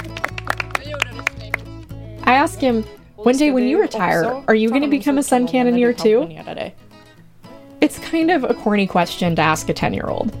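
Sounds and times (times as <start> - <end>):
few people clapping: 0.0 - 2.0
speech: 2.3 - 6.8, 7.8 - 10.3.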